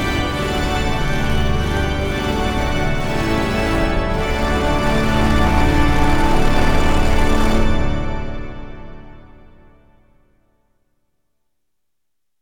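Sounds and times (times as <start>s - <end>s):
huge pipe organ with about 2000 ranks playing a carol: 0.0s - 9.6s.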